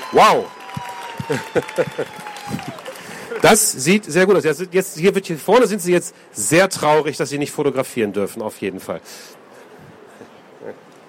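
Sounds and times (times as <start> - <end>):
audience applause at a sneaker presentation: 0.0 - 4.0
speech: 0.1 - 0.6, 1.3 - 9.4.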